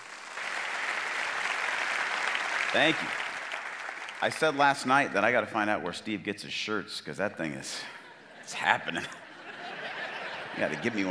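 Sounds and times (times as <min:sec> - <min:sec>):
church congregation at Northview applauding to welcome a speaker: 0:00.0 - 0:05.4
speech: 0:02.7 - 0:03.2, 0:04.2 - 0:09.2, 0:10.6 - 0:11.0
laughter: 0:07.7 - 0:11.0.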